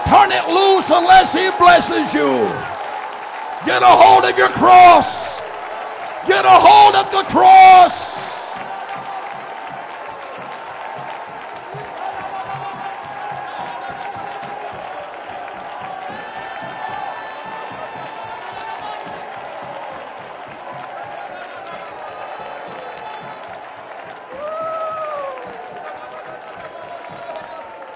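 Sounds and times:
audience shouting: 0.0s - 23.6s
audience clapping: 0.0s - 27.9s
speech: 0.1s - 2.8s, 3.6s - 5.2s, 6.2s - 8.2s.

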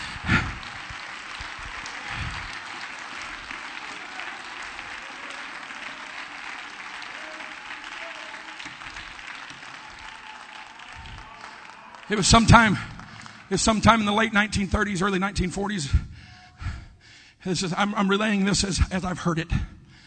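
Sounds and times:
audience clapping hands: 0.0s - 14.9s
speech: 12.1s - 12.9s, 13.5s - 16.1s, 17.4s - 19.6s.

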